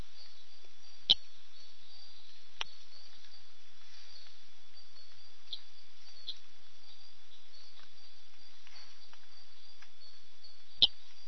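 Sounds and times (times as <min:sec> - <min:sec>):
Ischnocnema bolbodactyla calling: 0:00.2 - 0:03.5, 0:05.0 - 0:08.2, 0:10.5 - 0:11.1.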